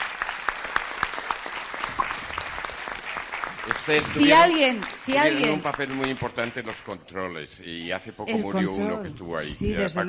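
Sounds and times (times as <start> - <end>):
audience applause: 0.0 - 7.0
speech: 3.9 - 10.0.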